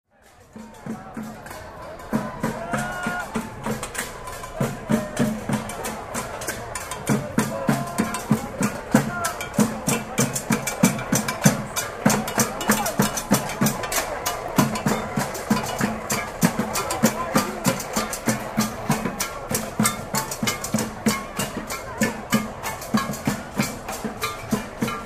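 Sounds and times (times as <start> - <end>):
percussion: 0.1 - 25.0.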